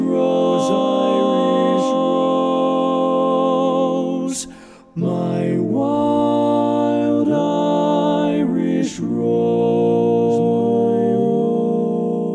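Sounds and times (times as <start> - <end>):
lead vocal part of a learning track: 0.0 - 12.3.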